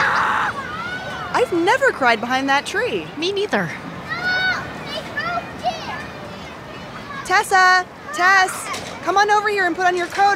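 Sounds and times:
kids laughing and screaming at play: 0.0s - 1.9s, 3.8s - 7.3s, 8.0s - 9.0s
speech: 1.4s - 3.8s, 7.3s - 10.3s.

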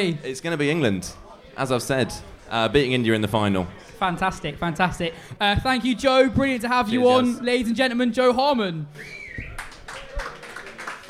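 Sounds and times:
speech: 0.0s - 9.2s
audience applause: 9.2s - 11.0s.

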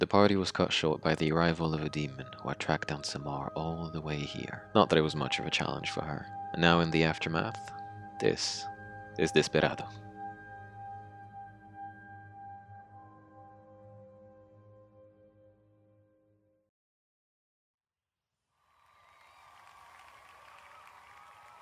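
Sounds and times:
speech: 0.0s - 10.0s
crowd clapping and cheering: 18.8s - 21.6s.

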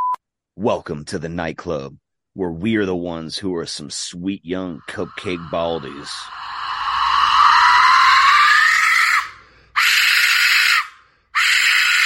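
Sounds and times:
speech: 0.6s - 6.6s
death whistle shriek: 4.8s - 12.0s.

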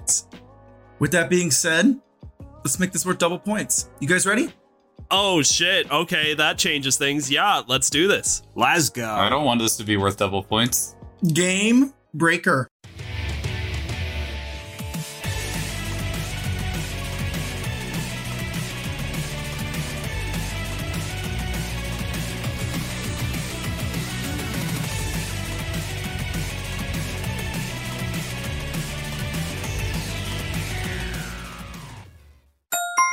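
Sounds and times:
energetic video game soundtrack song: 0.0s - 33.1s
speech: 0.1s - 0.3s, 1.0s - 12.7s
brief chime: 32.7s - 33.1s.

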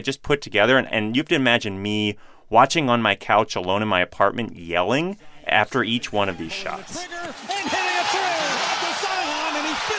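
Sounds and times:
speech: 0.0s - 8.5s
basketball crowd cheering: 6.1s - 9.9s.

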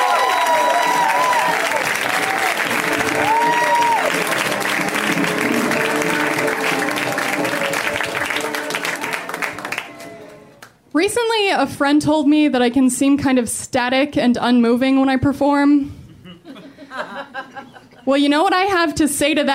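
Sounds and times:
audience whoops and cheers: 0.0s - 4.4s
audience applause for comedian: 0.0s - 10.7s
speech: 11.1s - 16.0s, 18.1s - 19.5s
laughter: 16.2s - 18.1s.

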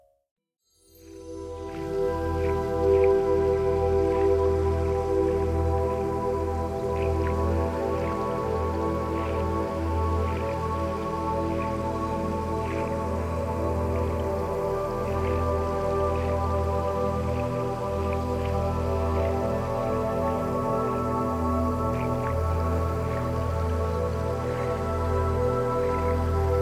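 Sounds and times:
low layered hum: 1.3s - 26.6s
faint light drips: 1.6s - 26.6s
steady water sounds: 1.6s - 26.6s.

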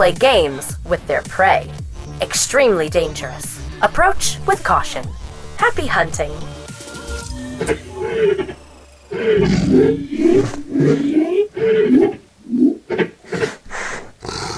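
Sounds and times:
speech: 0.0s - 6.5s, 7.6s - 13.4s
big cats roaring: 7.9s - 14.5s
big cats' throaty grunts: 9.3s - 14.5s.

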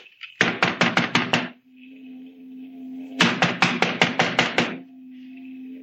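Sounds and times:
loud knocking on a door: 0.4s - 1.6s, 3.2s - 4.8s.

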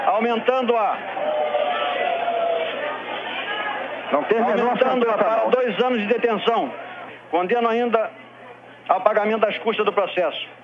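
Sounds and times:
crowd booing in a plenary chamber: 0.0s - 7.2s
speech: 0.2s - 1.4s, 4.1s - 8.2s, 8.9s - 10.6s.

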